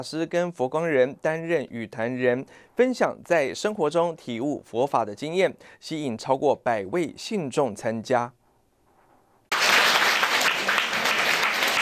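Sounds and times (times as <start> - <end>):
speech: 0.0 - 8.4
crowd applauding to welcome monks: 9.5 - 11.7.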